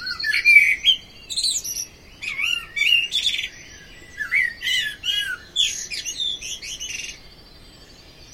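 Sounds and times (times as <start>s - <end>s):
blackbird singing: 0.0s - 8.3s.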